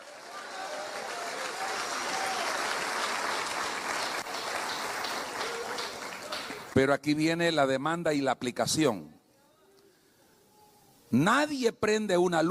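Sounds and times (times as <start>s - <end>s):
audience applauding: 0.0s - 6.8s
speech: 6.8s - 9.2s, 11.1s - 12.4s.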